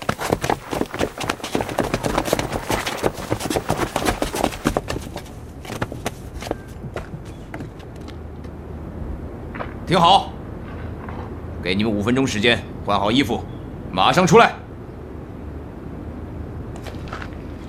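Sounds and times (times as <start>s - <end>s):
soldiers running in step with many boots: 0.0s - 8.1s
speech: 9.9s - 10.3s, 11.7s - 14.6s.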